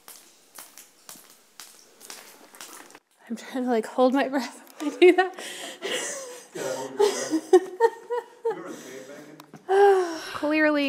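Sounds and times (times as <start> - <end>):
water dripping in a cave: 0.0 - 3.0
speech: 3.3 - 5.7, 10.4 - 10.8
laughter: 4.8 - 9.3.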